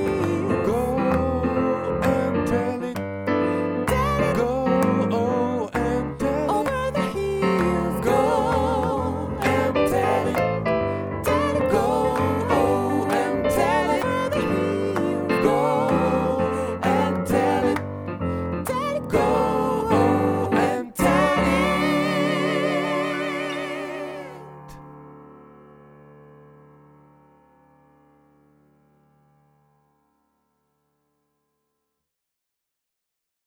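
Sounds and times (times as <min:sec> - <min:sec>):
tenors and basses singing gospel: 0:00.0 - 0:24.7.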